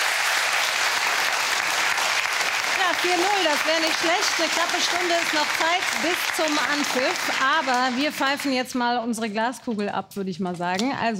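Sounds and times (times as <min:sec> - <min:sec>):
game show studio audience applauding the winner: 0:00.0 - 0:08.8
speech: 0:03.0 - 0:11.1.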